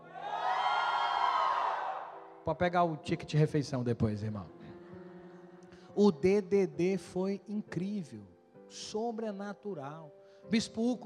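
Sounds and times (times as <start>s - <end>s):
crowd shouting and cheering: 0.0s - 2.3s
speech: 2.4s - 4.6s, 6.0s - 11.0s.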